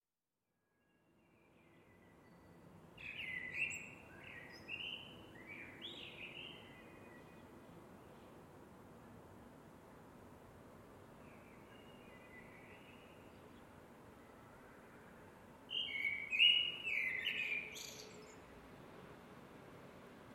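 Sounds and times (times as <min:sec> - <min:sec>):
Eurasian blackbird singing: 0:02.0 - 0:07.3, 0:15.7 - 0:18.4.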